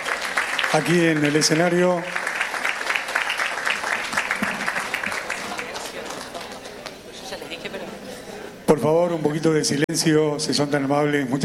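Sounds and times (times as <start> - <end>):
audience applause: 0.0 - 7.0
speech: 0.7 - 2.2, 8.8 - 11.4.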